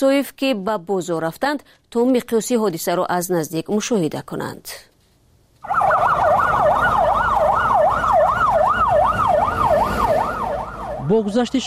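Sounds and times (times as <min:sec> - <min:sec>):
speech: 0:00.0 - 0:04.9, 0:11.1 - 0:11.6
fire engine siren at market fire: 0:05.6 - 0:11.6
low traffic rumble: 0:05.6 - 0:11.6.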